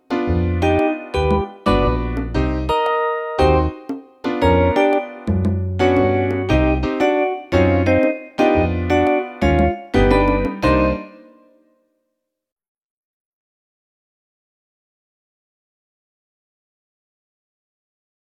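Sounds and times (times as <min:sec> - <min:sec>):
swing jazz: 0:00.1 - 0:11.1.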